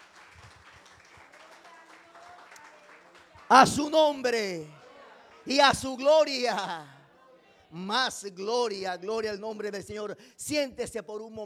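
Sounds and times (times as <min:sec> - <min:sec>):
large group applauding: 0:00.0 - 0:06.1
voices and cheers: 0:00.0 - 0:07.7
speech: 0:03.5 - 0:04.8, 0:05.5 - 0:07.0, 0:07.7 - 0:11.4.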